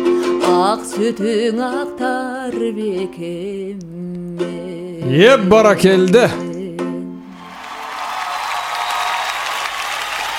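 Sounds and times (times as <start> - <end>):
speech: 0.5 - 6.5
audience applause at a live talk event: 7.3 - 10.3.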